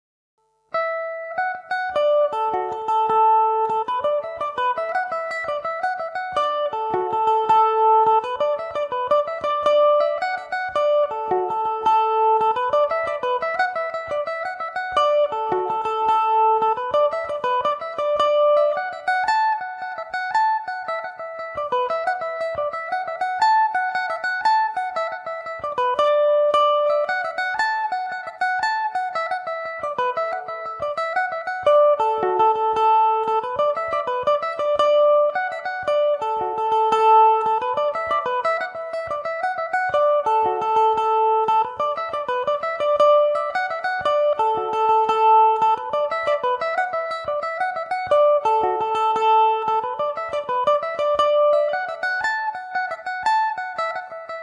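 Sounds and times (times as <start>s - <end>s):
jig in D major on Irish mandolin: 0.4s - 54.4s.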